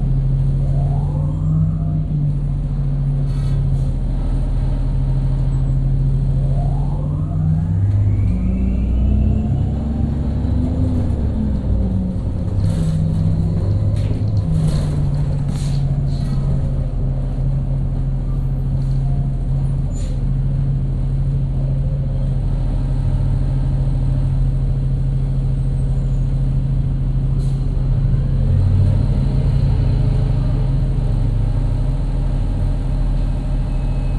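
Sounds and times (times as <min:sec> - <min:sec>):
bus engine rumbling: 0:00.0 - 0:34.1
road noise: 0:00.0 - 0:34.1
sharp clunks and rattles: 0:10.3 - 0:20.3.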